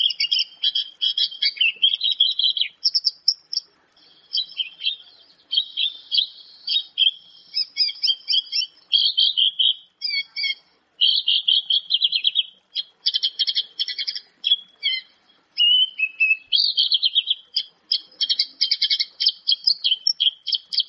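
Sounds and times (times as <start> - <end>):
Javan bush lark singing: 0.0 - 20.8.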